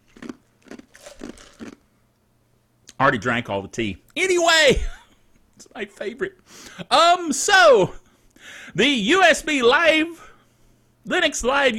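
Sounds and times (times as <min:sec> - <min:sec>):
ice from a glass of stevia-flavored black tea crunched between teeth: 0:00.0 - 0:01.8
speech: 0:03.0 - 0:05.0, 0:05.7 - 0:10.2, 0:11.1 - 0:11.7.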